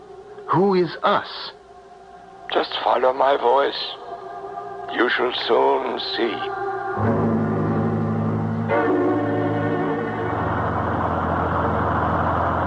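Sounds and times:
speech: 0.5s - 1.6s, 2.5s - 4.0s, 4.9s - 7.1s
bus engine running: 7.2s - 12.6s.

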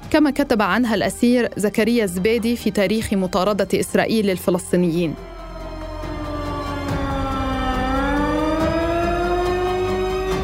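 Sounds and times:
speech: 0.1s - 5.3s
alarm siren after military raid: 5.1s - 10.4s.

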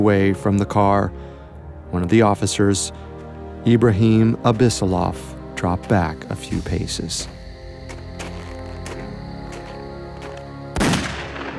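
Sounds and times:
speech: 0.0s - 1.3s, 1.9s - 7.4s
single gunshot: 10.8s - 11.5s.

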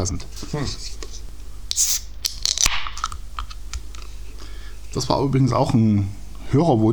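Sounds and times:
speech: 0.0s - 1.0s, 4.9s - 6.9s
beer can opening: 1.7s - 4.1s.

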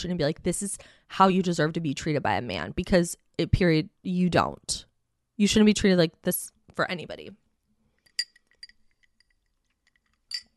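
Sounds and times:
speech: 0.0s - 7.4s
glass clinking: 8.1s - 10.5s.

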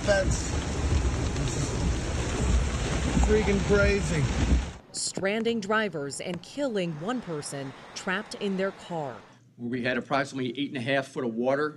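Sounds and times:
heavy pouring rain: 0.0s - 4.8s, 6.9s - 9.3s
speech: 3.3s - 11.7s.

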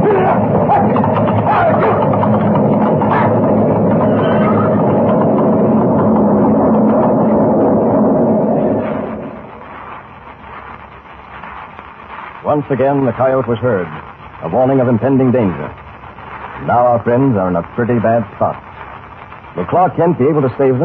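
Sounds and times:
avalanche rumbling down a mountain: 0.0s - 20.8s
speech: 12.6s - 15.8s, 16.6s - 18.6s, 19.6s - 20.8s.

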